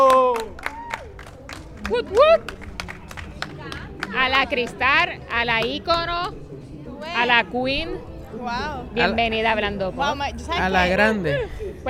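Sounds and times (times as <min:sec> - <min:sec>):
excited voices whooping and cheering: 0:00.0 - 0:02.7
scattered hand claps from a small group: 0:00.0 - 0:06.4
speech: 0:01.9 - 0:02.6, 0:04.1 - 0:11.8.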